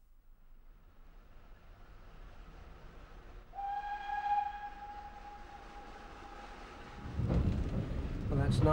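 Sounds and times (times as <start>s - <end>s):
train rumbling along railway line: 0.5s - 8.7s
train whistle: 3.5s - 7.2s
speech: 8.5s - 8.7s.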